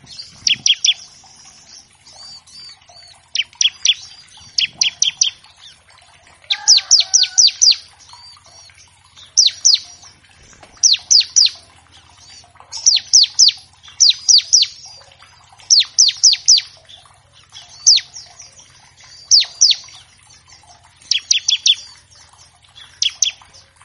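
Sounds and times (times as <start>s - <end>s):
Bar-winged Prinia singing bright high chipping notes: 0.0s - 23.8s.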